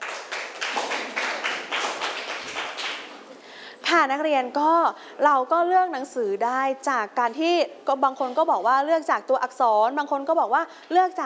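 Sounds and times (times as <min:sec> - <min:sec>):
students clapping hands in unison: 0:00.0 - 0:03.4
speech: 0:03.9 - 0:11.2.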